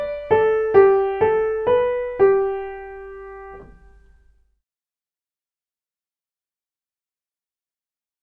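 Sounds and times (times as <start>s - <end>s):
music in G major: 0.0s - 4.2s.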